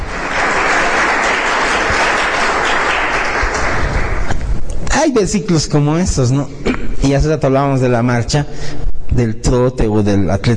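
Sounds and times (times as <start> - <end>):
audience applauding loudly: 0.0 - 4.4
speech: 5.0 - 10.5.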